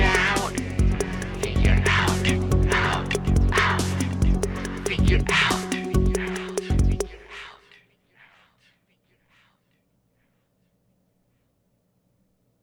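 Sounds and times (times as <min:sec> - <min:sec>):
soundcheck: 0:00.0 - 0:07.5.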